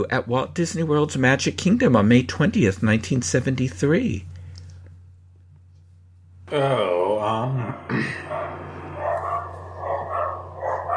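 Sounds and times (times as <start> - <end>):
speech: 0.0 - 4.3, 6.5 - 7.9
steady low hum: 0.0 - 10.9
dogs barking: 7.6 - 10.9.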